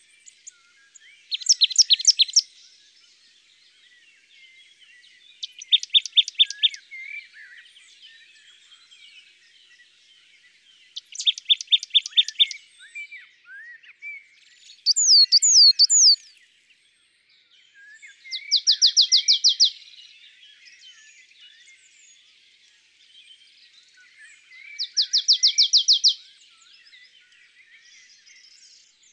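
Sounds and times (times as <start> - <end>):
marsh tit singing: 1.0 - 2.6, 5.0 - 9.8, 10.8 - 12.6, 14.6 - 16.3, 18.2 - 20.1, 24.4 - 27.1.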